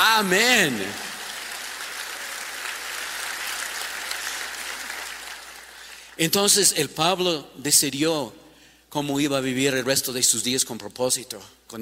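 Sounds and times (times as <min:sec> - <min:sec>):
audience applause: 0:00.0 - 0:06.2
speech: 0:00.2 - 0:01.1, 0:06.2 - 0:11.8.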